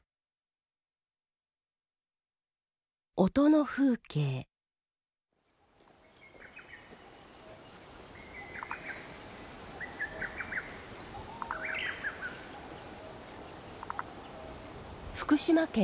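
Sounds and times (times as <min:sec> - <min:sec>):
speech: 0:03.2 - 0:04.5, 0:15.3 - 0:15.8
lesser cuckoo and common cuckoo calls in Komado marsh: 0:05.8 - 0:15.8.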